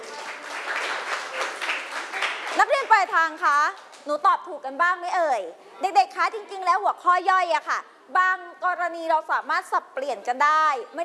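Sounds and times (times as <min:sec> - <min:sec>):
students clapping for themselves in a classroom quiz: 0:00.0 - 0:04.1
speech: 0:02.6 - 0:11.0.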